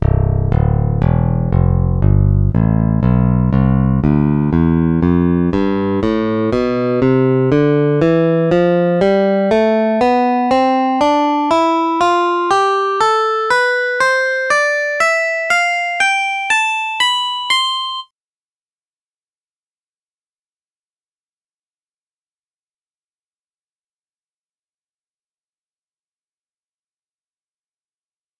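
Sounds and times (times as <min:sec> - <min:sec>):
picked bass guitar: 0:00.0 - 0:18.0.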